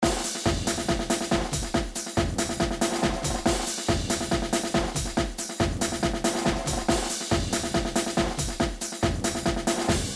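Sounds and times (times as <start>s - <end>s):
battle music: 0.0s - 10.1s.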